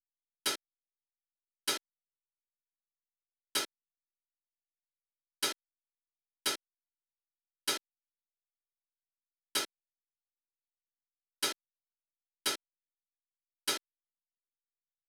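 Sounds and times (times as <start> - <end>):
hi-hat: 0.4 - 0.6, 1.6 - 1.9, 3.5 - 3.8, 5.4 - 5.6, 6.4 - 6.7, 7.7 - 7.9, 9.5 - 9.8, 11.4 - 11.6, 12.4 - 12.7, 13.7 - 13.9.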